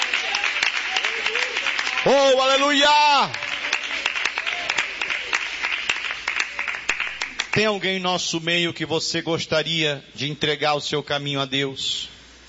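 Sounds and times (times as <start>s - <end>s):
audience applause: 0.0s - 7.7s
speech: 2.0s - 3.4s, 7.6s - 12.2s.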